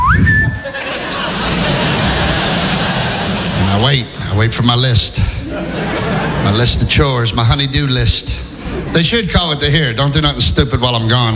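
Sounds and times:
Navy whistle being blown: 0.0 - 0.8
laughter: 0.3 - 9.3
speech: 3.8 - 11.3.

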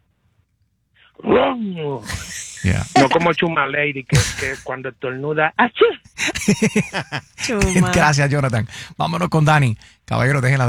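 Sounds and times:
speech: 1.2 - 10.6
laughter: 2.0 - 3.4, 4.1 - 4.7, 6.1 - 8.8
voice imitating a rumbling truck muffler: 2.0 - 3.4, 4.1 - 4.7, 7.2 - 8.2.

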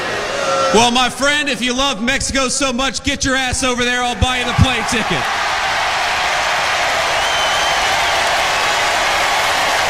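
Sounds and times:
large crowd cheering and roaring wildly at rally: 0.0 - 1.0, 4.1 - 9.8
speech: 0.7 - 5.5
crowd clapping at rally: 4.5 - 9.8.

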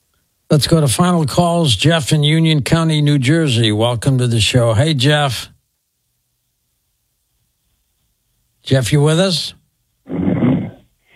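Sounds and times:
speech: 0.5 - 5.5, 8.7 - 10.2
man snoring over phone line: 10.1 - 10.9.

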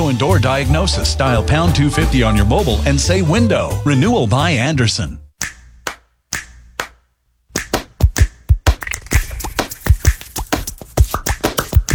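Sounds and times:
speech: 0.1 - 5.6
music made with hand claps and slaps: 5.4 - 11.9.

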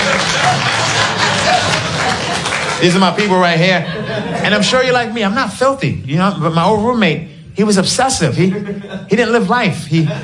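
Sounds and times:
audience clapping: 0.0 - 3.8
laughter: 0.0 - 10.2
speech: 2.8 - 10.2.

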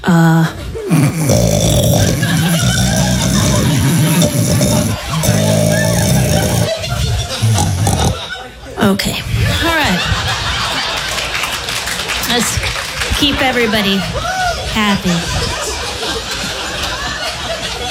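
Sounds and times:
voice imitating a sea cow off the coast of Queensland: 0.0 - 8.2
speech: 0.2 - 1.9, 13.6 - 15.5
laughter: 0.8 - 8.8, 9.4 - 17.8.

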